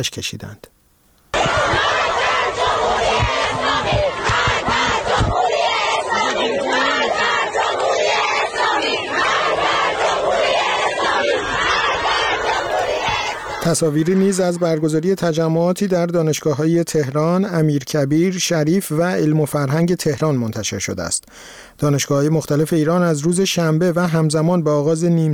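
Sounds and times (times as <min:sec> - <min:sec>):
speech: 0:00.0 - 0:00.7, 0:13.7 - 0:25.3
female students chanting slogans: 0:01.3 - 0:15.9.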